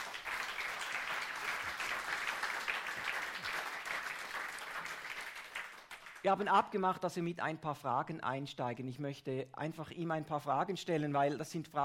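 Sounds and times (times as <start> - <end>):
audience applause: 0.0 - 6.3
speech: 6.2 - 11.8.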